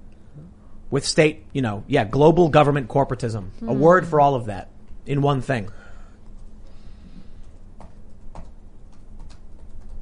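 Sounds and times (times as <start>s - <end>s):
steady low hum: 0.0s - 8.9s
speech: 0.4s - 5.8s
typing on a keyboard: 7.4s - 10.0s.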